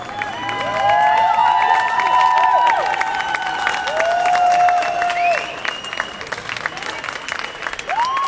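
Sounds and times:
loud applause from crowd: 0:00.0 - 0:08.2.

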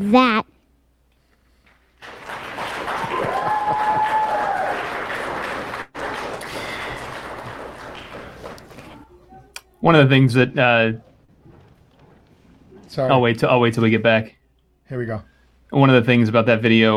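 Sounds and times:
speech: 0:00.0 - 0:00.5, 0:09.8 - 0:11.1, 0:12.9 - 0:16.9
audience clapping after child speaks: 0:01.6 - 0:09.0.

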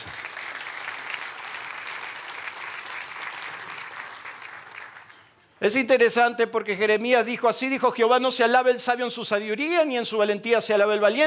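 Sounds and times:
audience applauding: 0:00.0 - 0:05.3
speech: 0:05.6 - 0:11.2.

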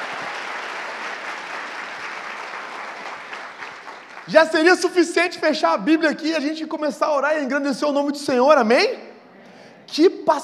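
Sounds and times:
audience applauding: 0:00.0 - 0:05.0
speech: 0:04.3 - 0:09.0, 0:09.9 - 0:10.4.

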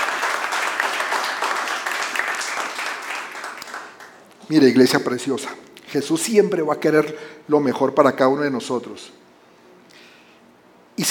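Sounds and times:
applause: 0:00.0 - 0:04.3
speech: 0:04.5 - 0:09.2.

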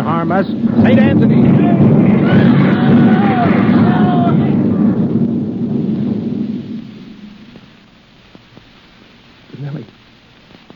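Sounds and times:
artillery shell explosion: 0:00.0 - 0:08.5
speech: 0:00.2 - 0:03.6.

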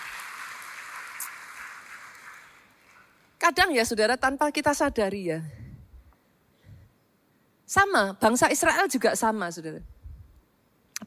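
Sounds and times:
audience applause: 0:00.0 - 0:03.2
speech: 0:03.5 - 0:05.6, 0:07.7 - 0:10.0.

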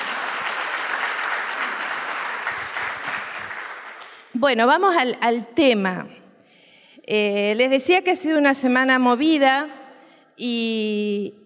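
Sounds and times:
audience applause: 0:00.0 - 0:04.3
speech: 0:04.4 - 0:06.2, 0:07.1 - 0:09.8, 0:10.4 - 0:11.4.

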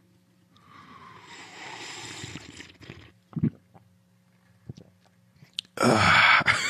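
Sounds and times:
person drinking water: 0:00.6 - 0:05.9.

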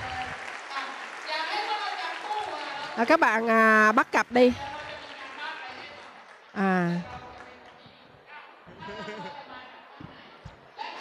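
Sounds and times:
audience applause: 0:00.0 - 0:07.9
speech: 0:03.0 - 0:04.8
laughter: 0:08.7 - 0:09.8.

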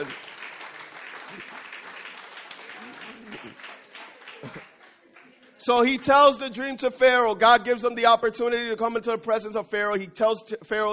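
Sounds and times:
church audience applause: 0:00.0 - 0:05.6
speech: 0:01.3 - 0:01.7, 0:02.8 - 0:03.8, 0:05.6 - 0:10.9.

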